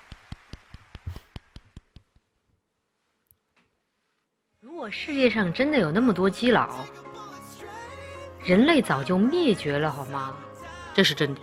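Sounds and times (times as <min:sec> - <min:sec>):
hand clapping: 0:00.0 - 0:02.3
speech: 0:04.8 - 0:07.0, 0:08.5 - 0:11.4.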